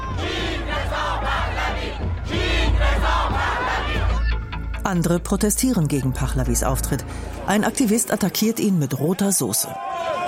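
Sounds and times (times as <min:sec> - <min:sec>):
fans cheering Reza Pahlavi in Berlin: 0:00.0 - 0:04.2, 0:09.4 - 0:10.2
speech: 0:04.8 - 0:10.2.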